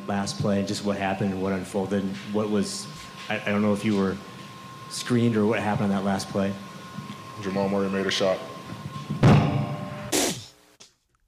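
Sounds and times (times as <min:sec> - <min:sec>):
speech: 0:00.1 - 0:04.3, 0:04.9 - 0:06.7, 0:07.4 - 0:08.5
microphone slammed down onto a table: 0:09.2 - 0:10.5.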